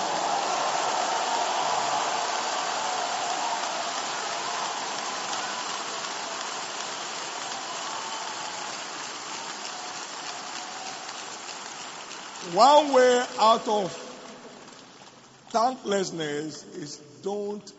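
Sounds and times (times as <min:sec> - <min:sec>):
audience clapping: 0:00.0 - 0:16.2
speech: 0:12.4 - 0:14.0, 0:15.5 - 0:17.7.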